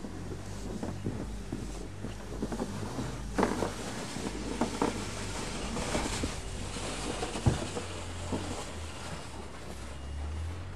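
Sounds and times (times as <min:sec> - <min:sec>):
low droning hum: 0:00.0 - 0:10.7
snow being cleared from a roof with scraping and crunching: 0:02.4 - 0:10.7.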